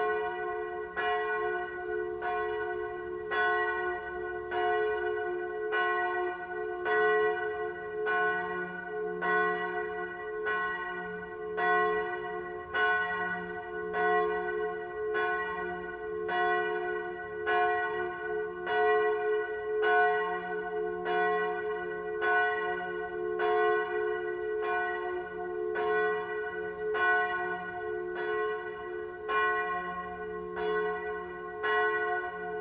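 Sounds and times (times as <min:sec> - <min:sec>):
bell at Wilten Abbey: 0:00.0 - 0:32.5.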